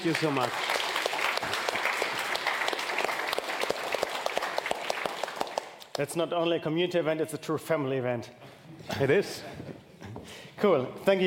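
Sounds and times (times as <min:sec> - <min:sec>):
speech: 0:00.0 - 0:00.7, 0:06.0 - 0:09.8, 0:10.6 - 0:11.2
audience applause: 0:00.0 - 0:06.0.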